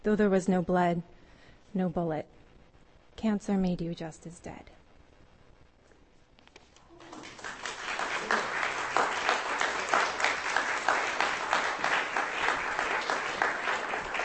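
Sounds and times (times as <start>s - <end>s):
speech: 0.0s - 2.4s, 3.2s - 4.8s
audience applause after a poetry reading: 6.9s - 14.2s.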